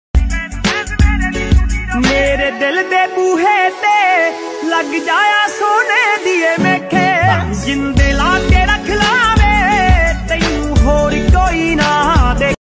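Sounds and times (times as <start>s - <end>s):
popular Punjabi song mobile ringtone: 0.2s - 12.6s.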